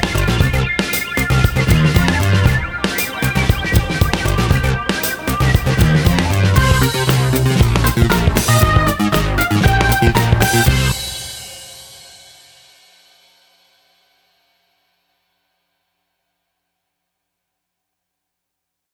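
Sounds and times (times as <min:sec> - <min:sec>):
electro music: 0:00.0 - 0:12.0.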